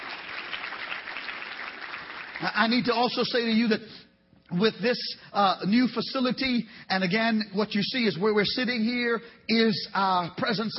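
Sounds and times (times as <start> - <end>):
audience clapping: 0.0 - 3.1
speech: 2.4 - 10.7.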